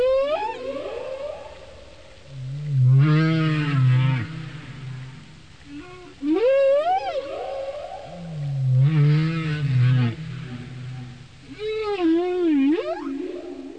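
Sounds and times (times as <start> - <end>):
humpback whale song: 0.0 - 13.7.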